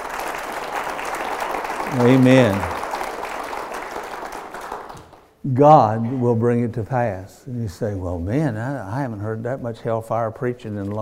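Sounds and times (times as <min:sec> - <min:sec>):
audience clapping hands: 0:00.0 - 0:05.4
speech: 0:01.9 - 0:02.7, 0:05.5 - 0:11.0.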